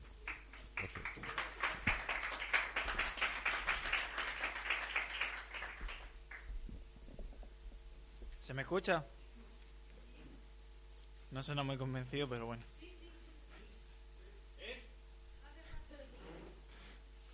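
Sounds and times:
audience applause: 0.0s - 6.5s
speech: 8.5s - 9.2s, 11.3s - 12.7s.

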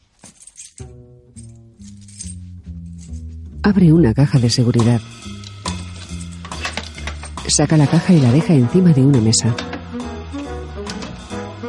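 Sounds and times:
keys taken out of a pocket: 0.0s - 3.3s, 5.2s - 7.6s
speech: 3.7s - 5.3s, 7.5s - 9.8s.

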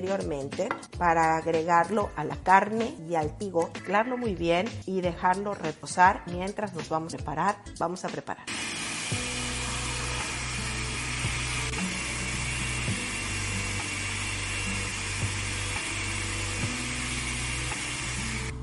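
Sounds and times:
speech: 0.0s - 9.2s
blender pureeing onion and spices into a paste: 8.5s - 18.6s.

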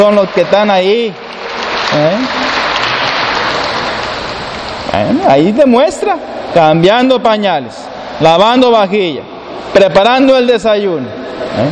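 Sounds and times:
speech: 0.0s - 1.2s, 1.9s - 2.6s, 5.0s - 11.7s
audience applauding loudly: 0.0s - 4.5s.

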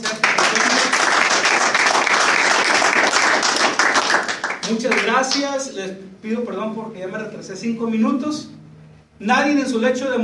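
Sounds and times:
audience applause: 0.0s - 5.1s
speech: 4.7s - 8.6s, 9.2s - 10.2s.

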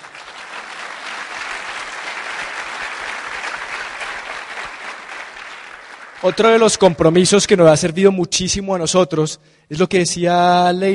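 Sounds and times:
audience applause: 0.0s - 7.0s
speech: 6.2s - 10.9s.

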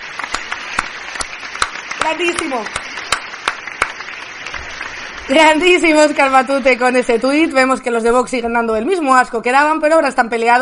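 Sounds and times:
audience applause: 0.0s - 8.0s
speech: 2.0s - 2.8s, 5.3s - 10.6s.

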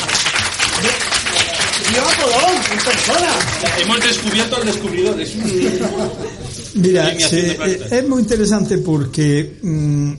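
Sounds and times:
crowd clapping: 0.0s - 5.9s
speech: 2.7s - 10.1s
laughter: 3.6s - 8.1s.

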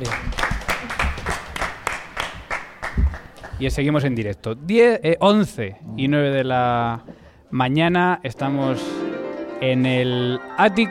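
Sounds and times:
audience applause: 0.0s - 3.6s
speech: 3.6s - 9.0s, 9.6s - 10.8s.

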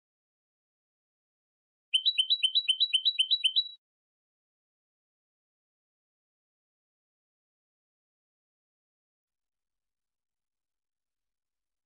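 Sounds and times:
European goldfinch song: 1.9s - 3.8s.

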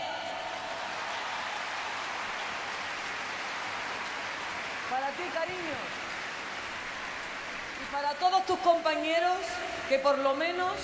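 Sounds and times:
crowd applause: 0.0s - 8.0s
speech: 4.9s - 6.1s, 7.8s - 10.8s.

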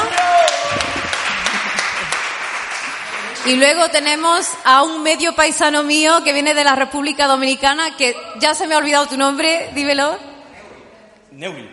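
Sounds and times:
group of people applauding: 0.0s - 4.4s
speech: 3.4s - 10.3s, 11.3s - 11.7s.

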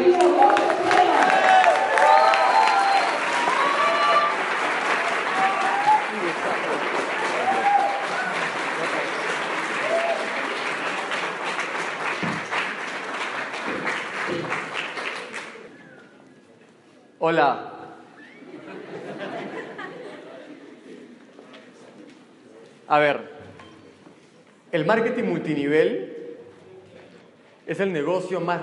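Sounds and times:
loud audience applause: 0.0s - 15.8s
laughter: 6.1s - 7.1s, 18.2s - 21.3s
speech: 24.8s - 26.0s, 27.7s - 28.6s.

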